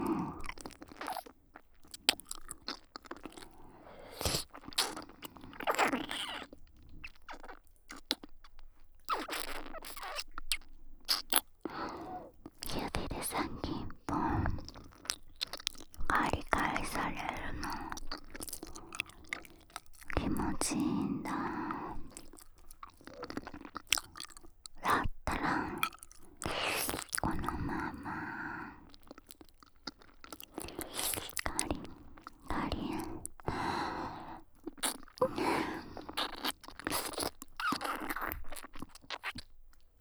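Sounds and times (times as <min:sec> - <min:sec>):
ear licking sounds: 0:00.0 - 0:39.9
voiceless whispering on stairs: 0:12.6 - 0:14.8, 0:16.0 - 0:18.0, 0:20.1 - 0:22.2, 0:24.8 - 0:25.8, 0:26.4 - 0:28.7, 0:30.6 - 0:33.2.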